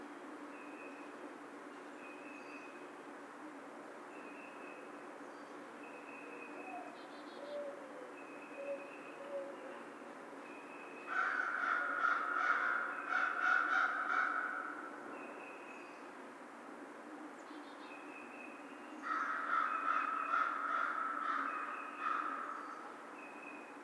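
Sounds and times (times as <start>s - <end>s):
American crow cawing: 11.1s - 14.9s, 19.0s - 22.8s.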